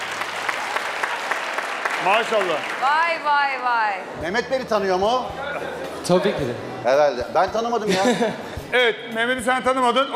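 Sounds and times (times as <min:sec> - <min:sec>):
audience applause: 0:00.0 - 0:03.3
speech: 0:02.0 - 0:10.1
laughter: 0:07.8 - 0:08.7.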